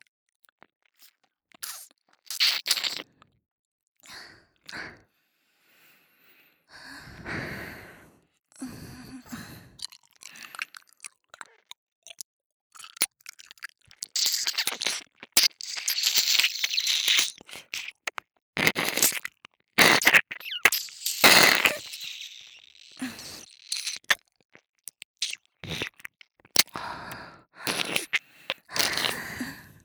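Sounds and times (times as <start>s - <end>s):
ear licking sounds on left and right: 1.6s - 3.0s, 13.9s - 26.8s, 27.6s - 29.3s.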